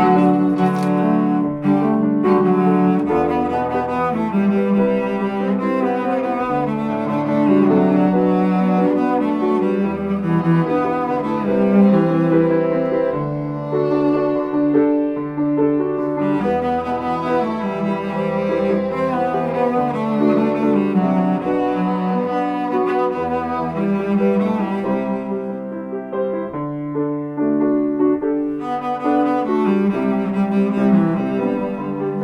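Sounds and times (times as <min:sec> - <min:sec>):
song with piano: 0:00.0 - 0:32.2.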